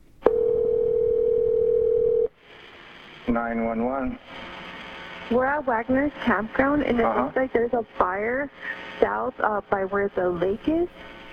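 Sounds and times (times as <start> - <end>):
telephone ringback tone on a 911 call: 0.3 - 2.3
speech: 3.3 - 4.5, 5.3 - 11.2.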